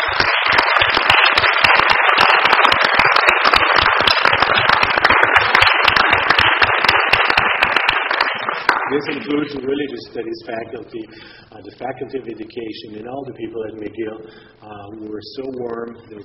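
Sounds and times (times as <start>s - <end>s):
audience applause: 0.0s - 9.5s
speech: 8.9s - 16.2s.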